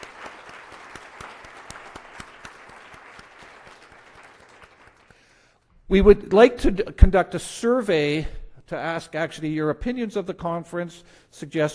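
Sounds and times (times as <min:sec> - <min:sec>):
audience applause: 0:00.0 - 0:05.2
speech: 0:05.9 - 0:11.7.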